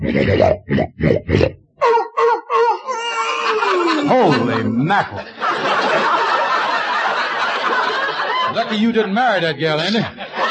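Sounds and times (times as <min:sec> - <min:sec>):
person imitating snoring: 0:00.0 - 0:01.6
speech: 0:00.2 - 0:01.6, 0:04.2 - 0:06.2, 0:08.6 - 0:10.2
laughter: 0:02.0 - 0:10.4.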